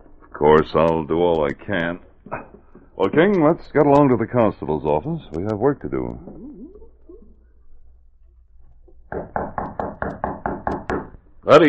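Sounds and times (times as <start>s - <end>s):
speech: 0.4s - 2.4s, 3.0s - 6.4s, 11.5s - 11.6s
knock at the door: 9.1s - 11.1s.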